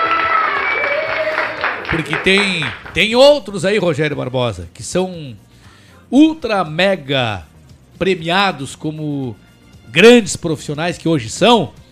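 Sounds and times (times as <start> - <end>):
faint whistles and cheers: 0.0 - 2.0
crowd applause: 0.0 - 3.0
speech: 2.0 - 5.5, 6.1 - 11.8.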